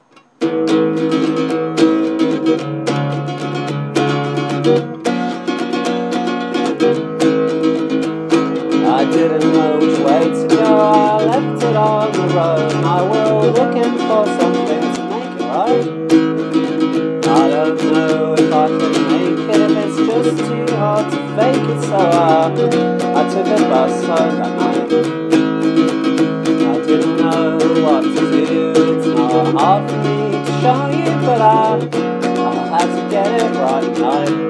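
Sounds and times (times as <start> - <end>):
improvised music: 0.0 - 34.4.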